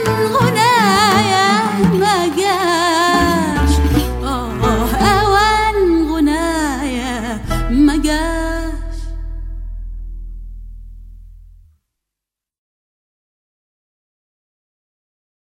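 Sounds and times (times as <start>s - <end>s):
person singing: 0.0s - 9.7s.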